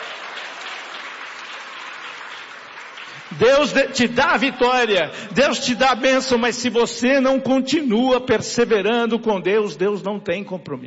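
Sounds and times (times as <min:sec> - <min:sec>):
audience clapping hands: 0:00.0 - 0:05.0
speech: 0:03.3 - 0:10.8.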